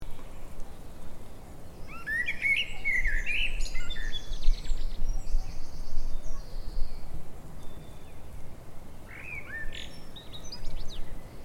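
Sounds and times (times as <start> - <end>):
steady low background noise: 0.0 - 11.4
Eurasian blackbird singing: 1.8 - 8.3, 9.0 - 11.4.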